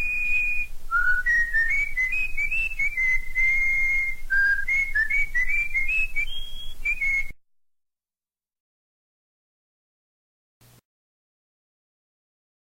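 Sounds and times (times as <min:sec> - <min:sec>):
corrupião bird singing: 0:00.0 - 0:07.3.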